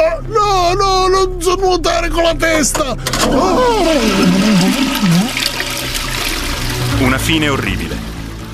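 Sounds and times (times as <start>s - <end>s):
speech: 0.2s - 5.4s, 7.0s - 8.1s
toilet flush as a comic sound effect: 3.0s - 8.5s.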